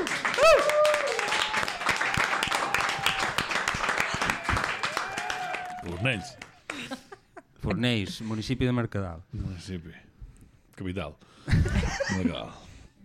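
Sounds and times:
audience applause: 0:00.0 - 0:06.9
voices cheering and calling out: 0:00.2 - 0:06.6
speech: 0:06.0 - 0:06.4, 0:07.6 - 0:10.0, 0:10.8 - 0:12.7.

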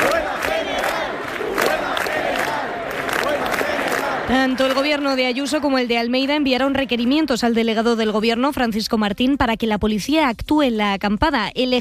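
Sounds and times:
large crowd of protesters voices: 0:00.0 - 0:07.5
speech: 0:04.3 - 0:11.8.

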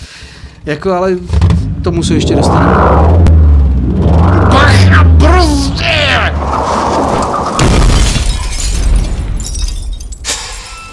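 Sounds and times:
vehicle rumbling: 0:00.0 - 0:10.2
speech: 0:00.6 - 0:03.3
heavy crunching crash of vehicle running over a probe: 0:06.5 - 0:09.5
debris rattling and shattering: 0:07.0 - 0:10.9.

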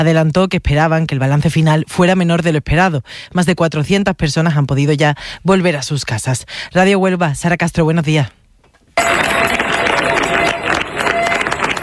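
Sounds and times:
speech: 0:00.0 - 0:08.4
residents of Niebla applauding a departing military emergency unit: 0:09.0 - 0:11.8.

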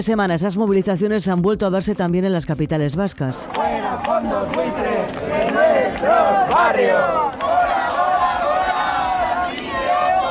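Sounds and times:
speech: 0:00.0 - 0:07.4
protesters chanting slogans: 0:03.4 - 0:10.2.

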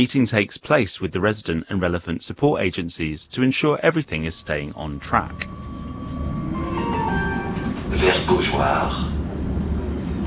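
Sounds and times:
speech: 0:00.0 - 0:05.7, 0:08.0 - 0:09.1
number 3 tram moving: 0:03.4 - 0:10.2.

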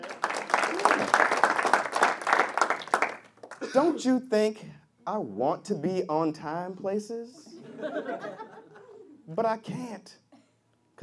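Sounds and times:
audience applause: 0:00.0 - 0:03.7
speech: 0:03.7 - 0:08.5, 0:09.3 - 0:10.2
laughter: 0:07.5 - 0:09.2.

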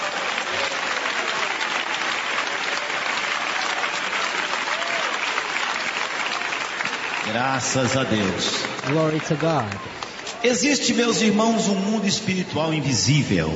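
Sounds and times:
church congregation clapping: 0:00.0 - 0:11.5
speech: 0:07.3 - 0:13.5.

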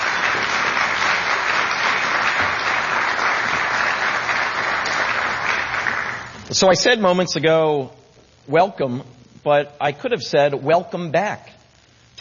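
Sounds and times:
audience applause: 0:00.0 - 0:06.4
speech: 0:06.5 - 0:11.6.

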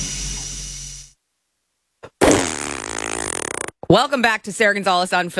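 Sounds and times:
fart sound effect: 0:02.2 - 0:03.8
speech: 0:03.9 - 0:05.3.

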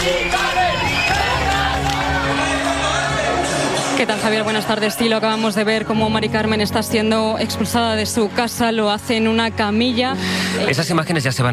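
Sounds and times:
large street crowd roaring with shouts and whoops: 0:00.0 - 0:05.8
speech: 0:04.0 - 0:11.5.

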